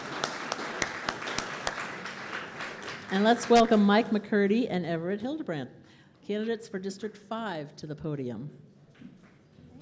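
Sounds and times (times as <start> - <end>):
audience applause: 0.0 - 3.8
speech: 3.1 - 8.7.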